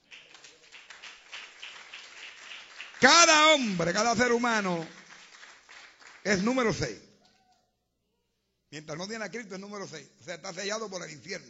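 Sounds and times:
applause: 0.0s - 7.1s
speech: 3.0s - 5.0s, 6.2s - 7.1s, 8.7s - 11.4s.

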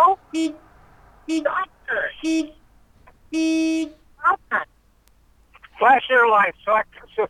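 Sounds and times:
car horn honking: 0.0s - 4.3s
speech: 0.3s - 0.6s, 1.3s - 2.6s, 3.3s - 4.7s, 5.8s - 7.2s.

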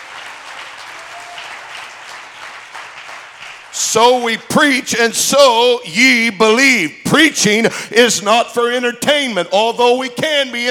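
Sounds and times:
audience clapping hands: 0.0s - 4.5s
speech: 3.8s - 10.6s.

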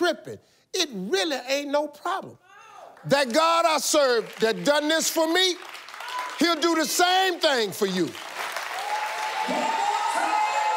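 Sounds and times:
speech: 0.1s - 8.3s, 9.5s - 9.9s
audience clapping at a church service: 3.0s - 10.7s.

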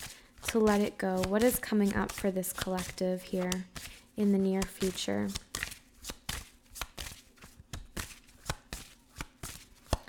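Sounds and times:
tarot cards shuffled during a card reading: 0.0s - 10.0s
speech: 0.5s - 5.4s.

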